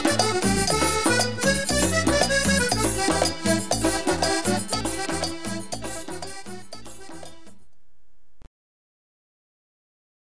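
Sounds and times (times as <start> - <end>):
accordion dance tune: 0.0 - 7.7.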